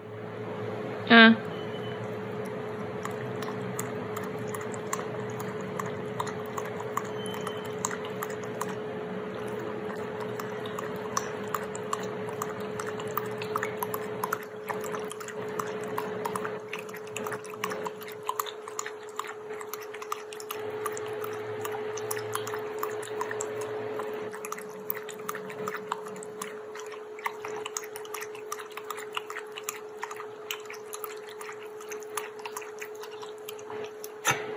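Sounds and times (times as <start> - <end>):
faint constant hum: 0.0 - 34.5
speech: 1.1 - 1.5
Shiba Inu lapping water: 1.5 - 34.4.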